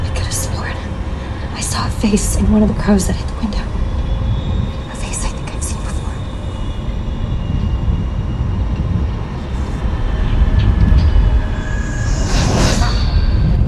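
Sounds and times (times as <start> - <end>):
speeding train rushing past a station: 0.0 - 13.6
speech: 2.0 - 3.6
hissing high squeal: 3.0 - 13.6.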